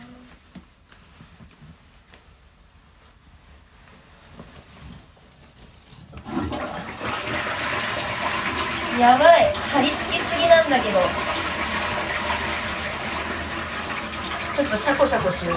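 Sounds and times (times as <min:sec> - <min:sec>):
toilet being flushed: 0:06.2 - 0:15.5
speech: 0:09.0 - 0:11.3, 0:14.6 - 0:15.5.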